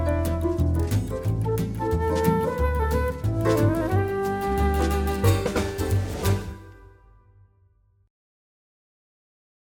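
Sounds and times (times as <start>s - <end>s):
flute swing music: 0.0s - 7.0s.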